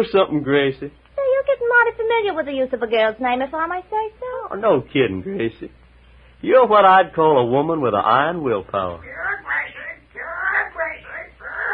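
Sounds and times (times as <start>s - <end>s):
speech: 0.0s - 5.8s, 6.4s - 9.2s
parrot squawking: 9.0s - 11.7s.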